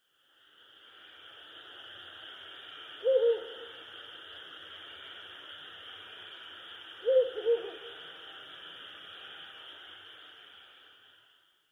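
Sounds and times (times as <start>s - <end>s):
owl hooting: 3.0s - 3.8s, 7.0s - 8.0s.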